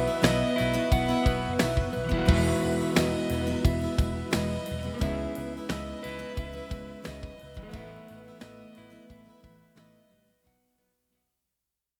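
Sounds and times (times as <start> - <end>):
instrumental music: 0.0 - 9.2.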